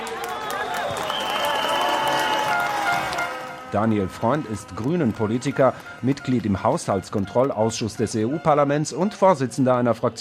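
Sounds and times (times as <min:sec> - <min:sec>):
applause: 0:00.0 - 0:07.4
crowd cheering at demonstration: 0:00.0 - 0:09.1
high whistles: 0:01.0 - 0:03.4
speech: 0:03.7 - 0:10.2.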